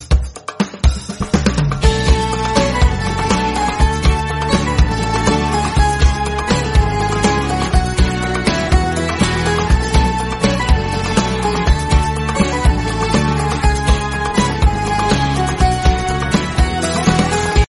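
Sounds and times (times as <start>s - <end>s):
Turkish ringtone: 1.8s - 17.6s.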